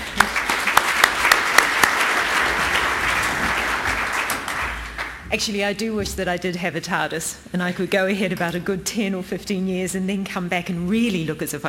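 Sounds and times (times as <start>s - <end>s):
audience applause greeting a speaker at a talk: 0.0s - 5.2s
sharp hand claps: 0.0s - 5.2s
speech: 5.3s - 11.6s.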